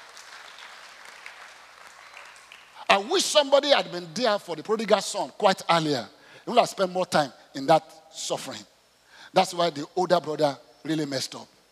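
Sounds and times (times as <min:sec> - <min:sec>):
congregation clapping hands in church: 0:00.0 - 0:03.6
speech: 0:02.9 - 0:08.7, 0:09.3 - 0:11.5.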